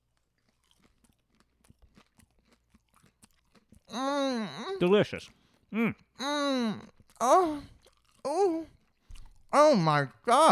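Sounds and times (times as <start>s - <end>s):
crunchy bites and chewing of oven-baked food: 0.0s - 4.6s, 6.9s - 9.6s
speech: 3.9s - 7.7s, 9.5s - 10.5s.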